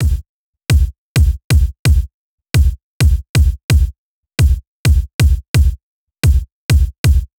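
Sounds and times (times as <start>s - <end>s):
kick drum: 0.0s - 7.3s.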